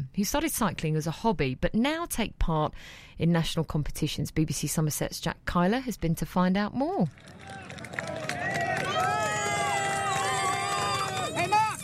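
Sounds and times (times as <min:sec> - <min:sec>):
speech: 0:00.2 - 0:07.6
expectant and excited crowd on the streets of Paris at cycling race: 0:07.2 - 0:11.8.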